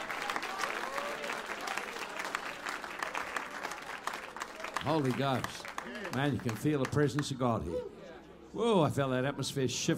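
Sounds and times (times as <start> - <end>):
audience clapping: 0.0 - 7.4
speech: 4.8 - 9.9.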